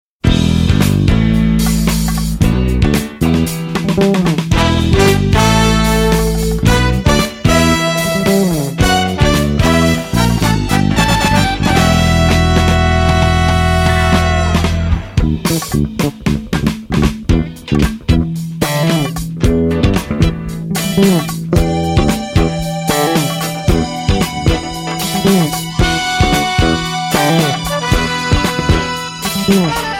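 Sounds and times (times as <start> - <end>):
funky Korean soul music: 0.2 - 29.9.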